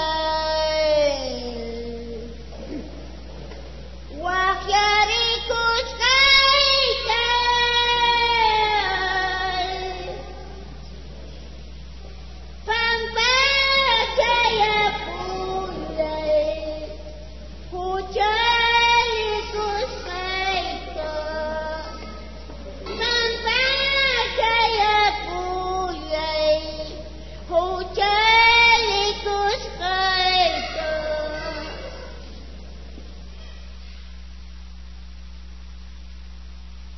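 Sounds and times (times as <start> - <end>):
person singing a hymn: 0.0 - 2.4, 4.1 - 10.4, 12.7 - 32.2.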